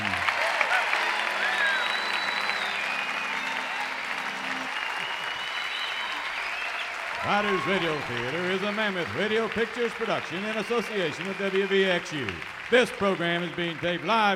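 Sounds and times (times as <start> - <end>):
audience applause: 0.0 - 14.3
faint whistles: 1.2 - 7.0
speech: 7.3 - 14.3.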